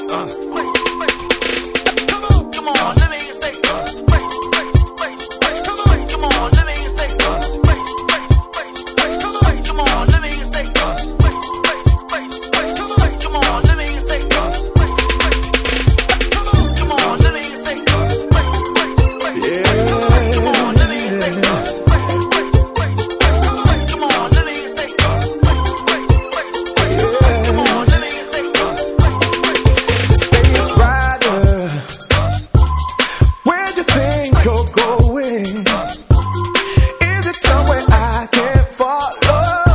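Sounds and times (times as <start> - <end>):
Miami bass music: 0.3 - 39.7.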